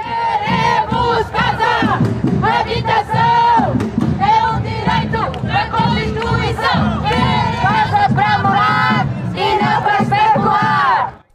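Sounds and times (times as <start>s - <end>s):
protest crowd shouting chants in street: 0.0s - 11.3s.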